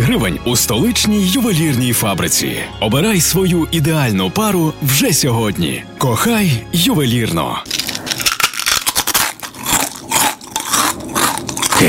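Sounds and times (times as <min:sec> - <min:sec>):
speech: 0:00.1 - 0:07.8
crunching potato chips: 0:07.6 - 0:11.8.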